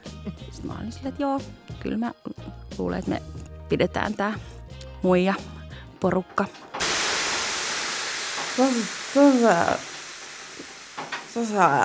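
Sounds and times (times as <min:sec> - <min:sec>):
speech: 0:00.2 - 0:06.7, 0:08.6 - 0:09.9, 0:11.4 - 0:11.8
water thrown on hot sauna stones sizzling: 0:06.8 - 0:11.8.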